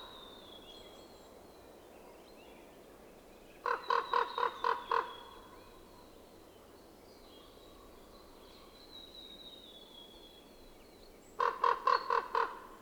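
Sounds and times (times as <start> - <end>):
Corvus corax raven calling: 3.7 - 5.4, 11.4 - 12.8.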